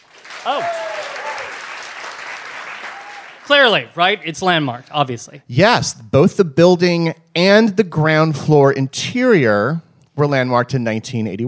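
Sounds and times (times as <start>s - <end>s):
audience applause: 0.0s - 4.1s
speech: 0.4s - 0.9s, 3.5s - 11.4s.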